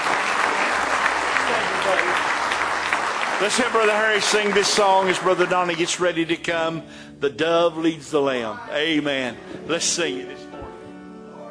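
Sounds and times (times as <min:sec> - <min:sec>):
audience applause: 0:00.0 - 0:06.4
speech: 0:03.4 - 0:10.4.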